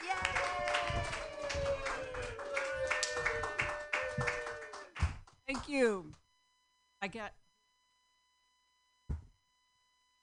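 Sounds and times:
stand-up comedy audience applause: 0.0 - 5.8
speech: 5.6 - 6.2, 7.0 - 7.4.

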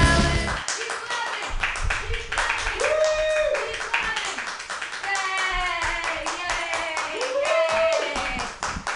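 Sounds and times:
audience clapping: 0.2 - 8.9
loud shouts and cheering voices: 2.7 - 4.2, 5.1 - 8.4.

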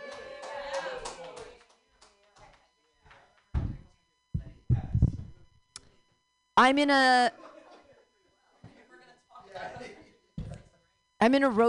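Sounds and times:
audience clapping: 0.0 - 3.2
speech: 6.6 - 7.4, 11.2 - 11.6.

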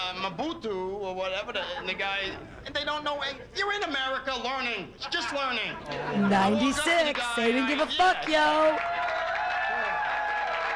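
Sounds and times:
speech: 0.1 - 8.9
audience clapping: 7.8 - 10.7.

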